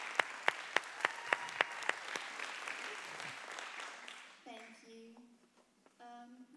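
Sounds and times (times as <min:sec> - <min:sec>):
audience applause: 0:00.0 - 0:04.4.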